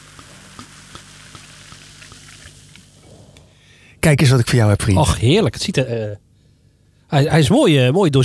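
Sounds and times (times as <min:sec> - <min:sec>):
poured drink fizzing: 0:00.0 - 0:03.1
speech: 0:04.0 - 0:06.2, 0:07.1 - 0:08.2.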